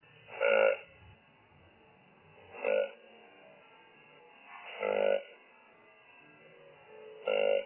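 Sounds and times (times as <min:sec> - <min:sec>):
grunt: 0:00.3 - 0:00.9, 0:04.7 - 0:05.3, 0:07.2 - 0:07.6.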